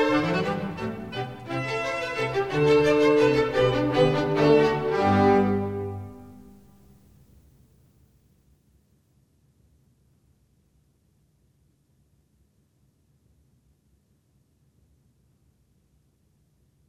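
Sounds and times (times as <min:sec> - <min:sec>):
minuet: 0:00.0 - 0:06.9.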